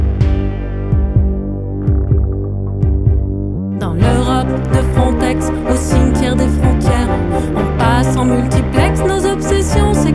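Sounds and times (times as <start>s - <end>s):
deep throbbing heartbeat in paired thumps: 0.0s - 5.3s
speech: 4.5s - 9.3s.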